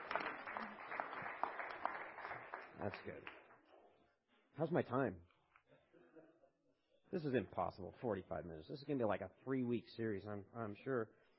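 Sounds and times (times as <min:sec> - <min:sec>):
audience applause: 0:00.0 - 0:03.5
speech: 0:02.8 - 0:03.4, 0:04.6 - 0:05.3, 0:07.1 - 0:11.2.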